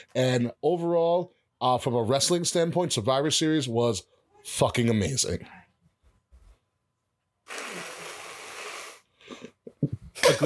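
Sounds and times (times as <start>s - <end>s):
speech: 0.0s - 5.6s
person blowing nose: 7.5s - 9.5s.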